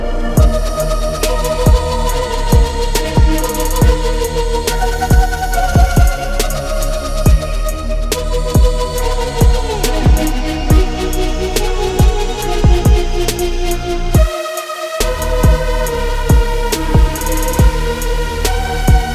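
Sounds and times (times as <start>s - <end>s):
witch house trap synth presets: 0.0s - 19.1s.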